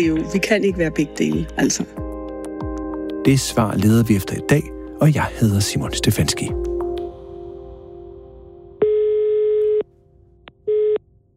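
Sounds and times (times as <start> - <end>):
speech: 0.0 - 2.0, 3.2 - 6.7
telephone line tones calling the Danish tax authority: 8.8 - 9.9, 10.5 - 11.0.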